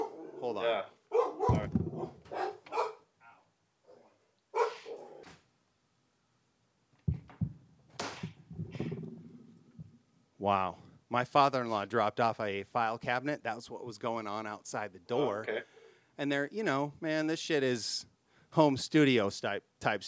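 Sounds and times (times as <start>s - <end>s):
dogs barking: 0.0s - 0.5s, 1.1s - 5.2s
speech: 0.5s - 1.0s, 10.4s - 20.0s.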